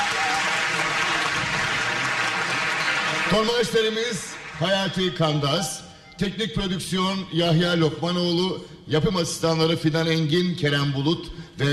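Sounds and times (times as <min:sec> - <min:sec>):
audience applause: 0:00.0 - 0:05.1
speech: 0:03.3 - 0:11.7.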